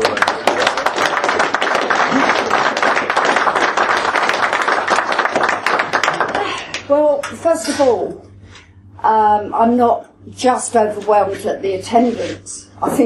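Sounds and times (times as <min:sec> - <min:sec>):
large crowd applauding at a nationalist political gathering: 0:00.0 - 0:06.9
speech: 0:07.3 - 0:08.3, 0:09.0 - 0:13.0.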